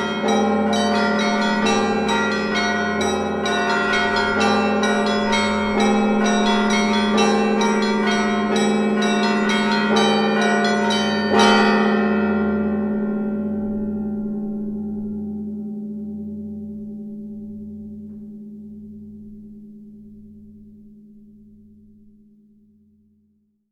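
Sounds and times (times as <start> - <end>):
church bells ringing before the Gospel reading at matins: 0.0 - 18.5.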